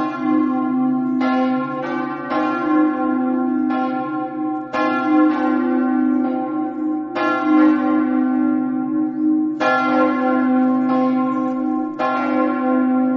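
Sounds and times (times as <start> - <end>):
bells ringing: 0.0 - 13.1.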